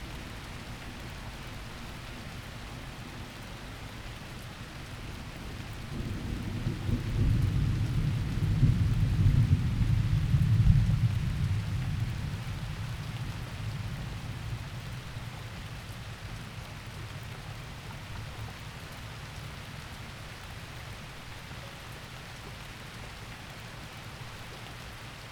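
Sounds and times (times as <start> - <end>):
thunderstorm: 5.5 - 15.6.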